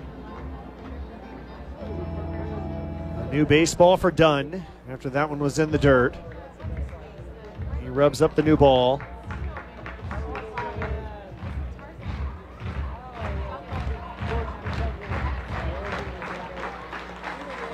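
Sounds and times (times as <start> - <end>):
speech: 3.3 - 6.3, 7.9 - 9.1
crowd clapping in unison: 6.2 - 17.7.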